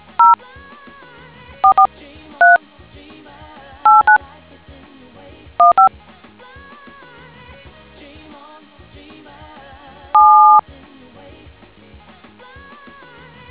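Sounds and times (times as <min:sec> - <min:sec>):
DTMF tones: 0:01.6 - 0:02.6, 0:03.9 - 0:04.2, 0:05.6 - 0:05.9, 0:10.2 - 0:10.6.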